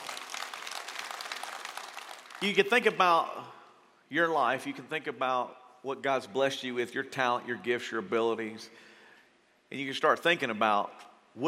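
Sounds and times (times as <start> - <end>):
audience clapping: 0.0 - 2.9
speech: 2.4 - 8.9, 9.7 - 11.4.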